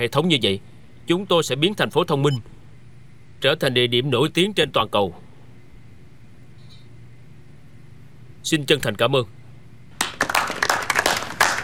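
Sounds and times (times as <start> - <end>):
speech: 0.0 - 2.6, 3.4 - 5.2, 8.4 - 9.4
scattered clapping from a modest group after a smart city strategy presentation: 10.0 - 11.6.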